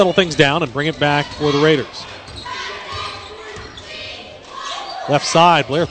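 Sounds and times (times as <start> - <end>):
speech: 0.0 - 2.2, 5.1 - 5.8
crowd murmur: 0.0 - 5.8
basketball dribbled on the court during a women's game: 0.3 - 4.2.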